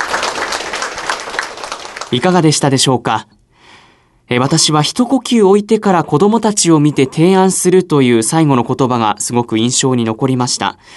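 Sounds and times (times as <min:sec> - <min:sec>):
audience applause: 0:00.0 - 0:02.4
speech: 0:02.1 - 0:03.4, 0:04.3 - 0:10.9.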